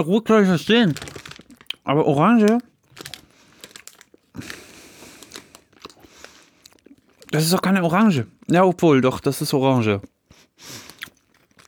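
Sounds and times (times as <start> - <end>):
speech: 0.0 - 1.1, 1.8 - 2.7, 7.3 - 10.8
light crinkling: 0.4 - 7.7, 10.8 - 11.6
gummy bears being eaten: 0.6 - 7.7, 10.0 - 11.6.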